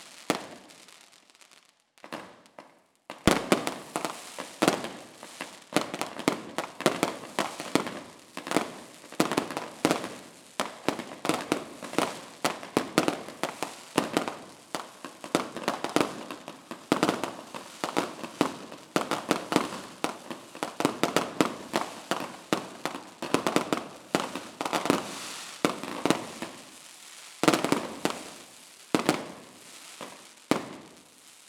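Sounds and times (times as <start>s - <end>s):
fireworks: 0.0s - 31.4s.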